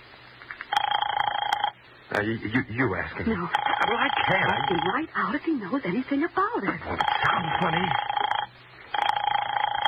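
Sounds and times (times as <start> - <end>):
telephone ring tone: 0.7 - 1.8, 3.6 - 5.1, 7.0 - 9.8
speech: 2.2 - 8.1.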